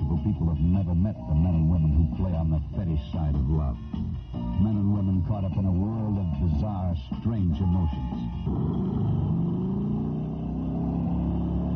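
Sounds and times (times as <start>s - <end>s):
speech: 0.3s - 9.6s
motorcycle engine revving: 8.2s - 11.7s.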